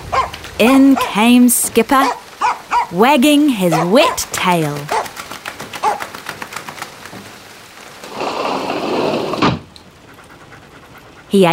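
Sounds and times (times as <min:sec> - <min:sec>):
rain falling: 0:00.0 - 0:11.5
speech: 0:00.6 - 0:02.2, 0:02.9 - 0:05.0, 0:11.3 - 0:11.5.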